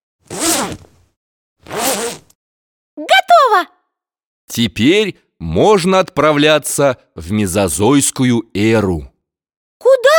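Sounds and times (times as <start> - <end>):
diving suits being zipped up: 0.2 - 2.4
speech: 3.0 - 3.8, 4.5 - 9.1.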